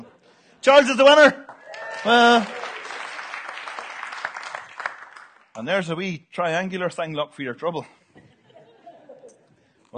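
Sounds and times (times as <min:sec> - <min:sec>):
speech: 0:00.6 - 0:02.6, 0:05.6 - 0:08.3
crowd applause: 0:01.5 - 0:05.5
laughter: 0:08.2 - 0:09.5.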